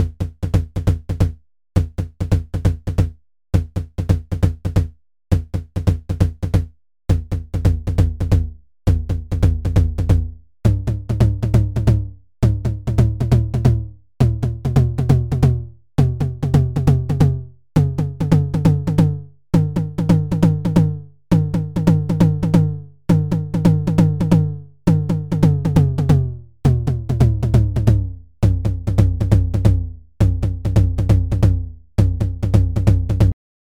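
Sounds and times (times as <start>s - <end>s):
Roland TR-09 tom: 0.0s - 33.4s.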